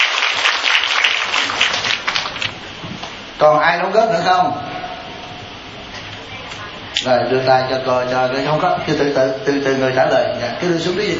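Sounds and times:
audience applause: 0.0s - 2.6s
speech: 3.4s - 4.7s, 7.0s - 11.1s.

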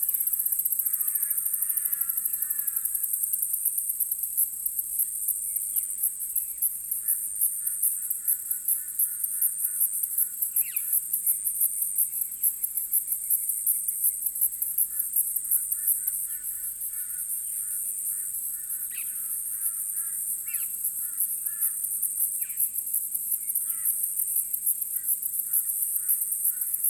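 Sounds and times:
cicada chorus in Australia or Portugal: 0.0s - 26.8s.

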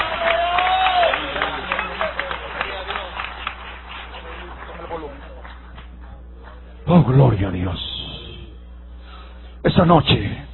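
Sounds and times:
audience applauding: 0.0s - 6.2s
speech: 7.0s - 7.9s, 9.7s - 10.4s.

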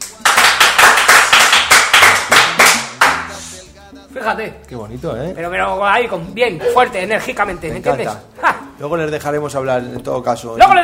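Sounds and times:
listeners clapping: 0.0s - 3.5s
speech: 4.2s - 10.8s.

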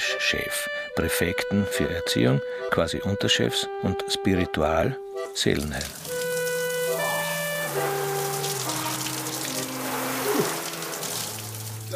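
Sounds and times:
speech: 0.2s - 6.1s
hot shower water running in a basement shower room: 5.5s - 11.9s
humming pipe-like tone: 6.0s - 11.4s.

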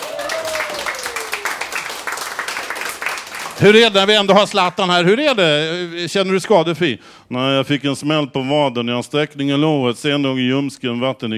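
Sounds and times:
applause: 0.0s - 4.8s
speech: 3.6s - 11.3s.

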